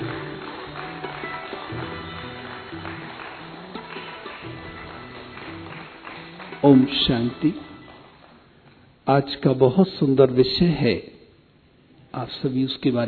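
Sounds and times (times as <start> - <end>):
audience clapping loudly: 0.0 - 8.4
speech: 6.6 - 7.6, 9.1 - 11.1, 12.2 - 13.0.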